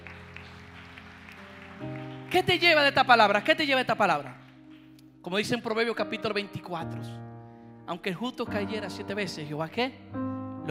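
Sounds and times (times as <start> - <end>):
audience applause: 0.0 - 3.6
speech: 1.8 - 4.4, 5.2 - 7.2, 7.9 - 10.6.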